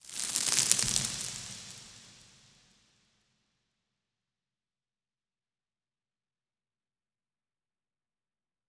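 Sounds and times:
rock debris in environment: 0.0 - 2.7.

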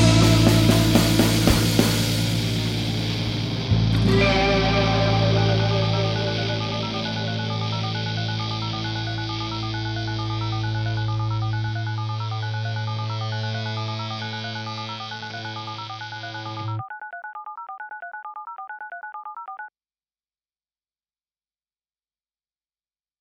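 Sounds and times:
instrumental theme music: 0.0 - 16.8.

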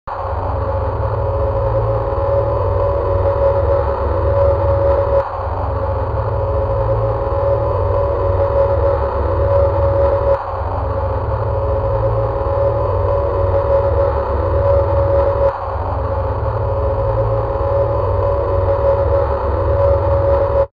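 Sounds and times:
radio: 0.1 - 20.7.

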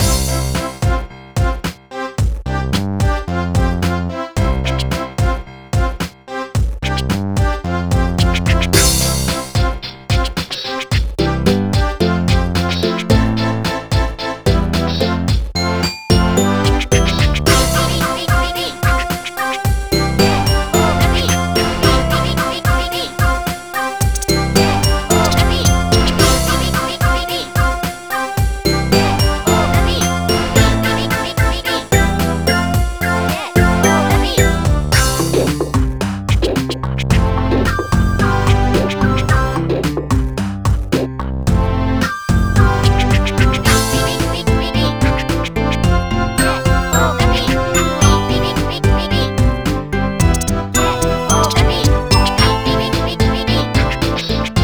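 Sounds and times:
music at 105 BPM: 0.0 - 54.6.

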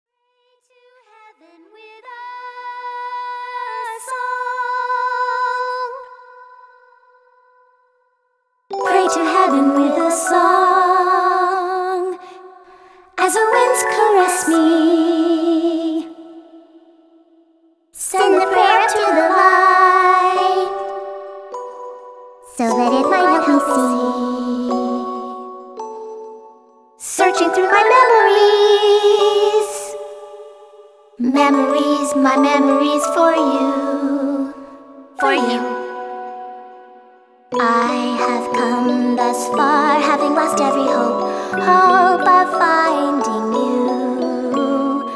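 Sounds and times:
vocals: 0.2 - 7.7, 8.7 - 17.3, 18.0 - 21.7, 22.4 - 25.6, 27.0 - 36.3, 37.5 - 45.1
music box: 8.7 - 12.3, 18.2 - 45.1.

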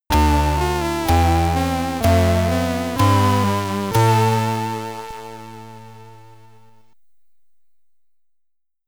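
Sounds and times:
Commodore 64 SID stereo game over music: 0.1 - 6.8.

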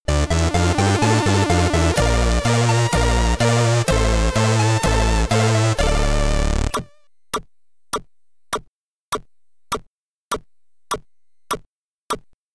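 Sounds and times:
Commodore 64 SID stereo chiptune music: 0.0 - 6.9.

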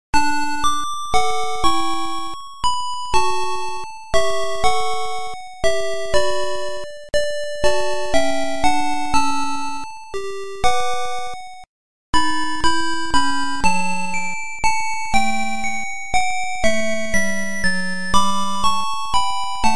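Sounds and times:
nursery rhyme song: 0.2 - 19.7.

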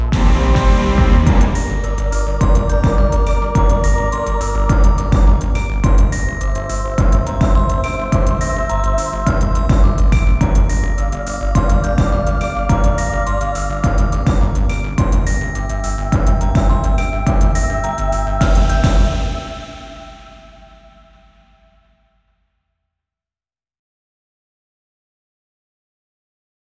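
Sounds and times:
resounding alarm bell: 0.2 - 21.0.

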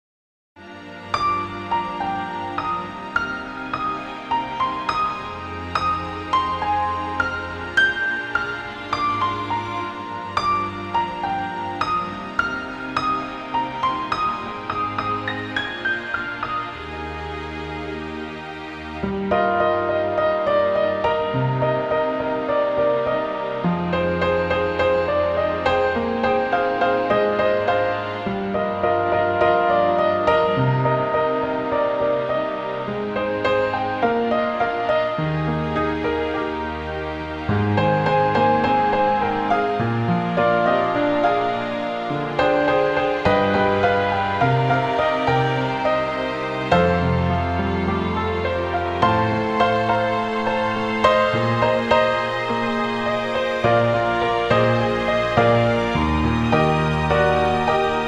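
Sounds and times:
piano instrumental: 0.6 - 58.0.

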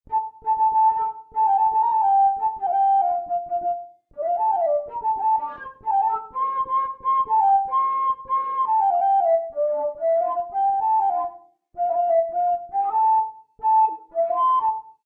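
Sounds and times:
flute: 0.1 - 15.0.

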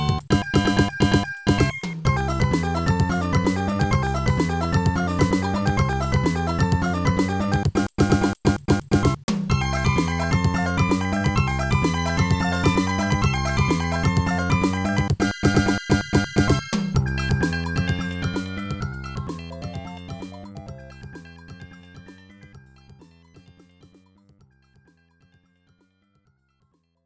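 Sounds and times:
samba music: 0.0 - 20.9.

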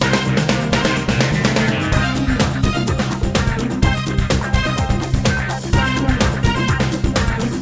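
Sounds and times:
win music loop: 0.0 - 7.6.

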